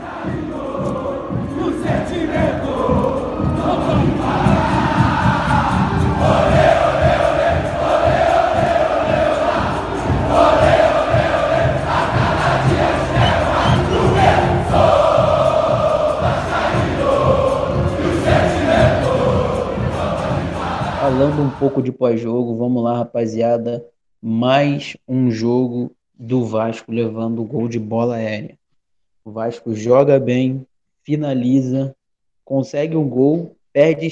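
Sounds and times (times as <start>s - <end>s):
football crowd chanting and singing in stadium: 0.0s - 21.8s
rhythmic pulses: 0.0s - 21.8s
speech: 21.7s - 28.6s, 29.3s - 34.0s.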